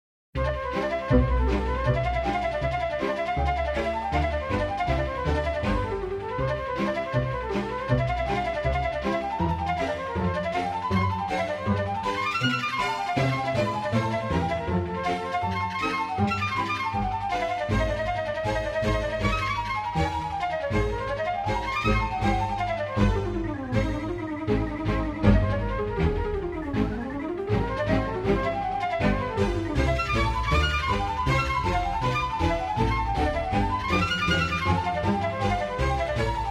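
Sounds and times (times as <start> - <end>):
easy listening and classical music: 0.4 - 36.5.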